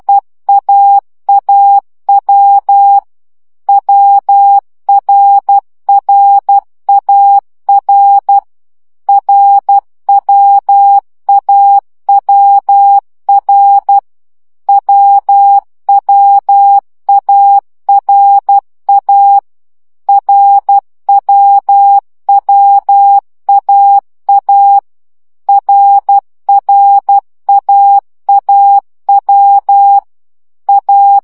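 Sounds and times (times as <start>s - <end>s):
CW morse code practice at 10 baud: 0.0s - 3.1s, 3.7s - 8.5s, 9.1s - 14.0s, 14.7s - 19.5s, 20.1s - 24.9s, 25.5s - 30.1s, 30.7s - 31.2s.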